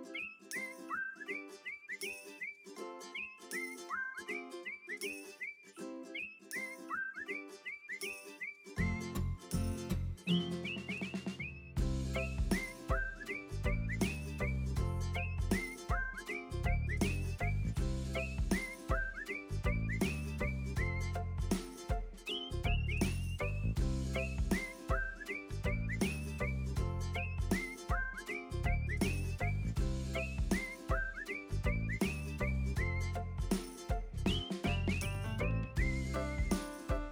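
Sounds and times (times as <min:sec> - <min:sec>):
whistle: 0:00.1 - 0:09.4, 0:10.2 - 0:21.4, 0:22.3 - 0:33.4, 0:34.2 - 0:36.9.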